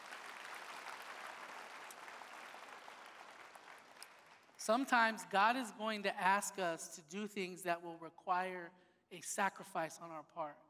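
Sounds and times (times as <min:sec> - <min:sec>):
audience clapping: 0:00.0 - 0:04.6
speech: 0:04.6 - 0:10.6.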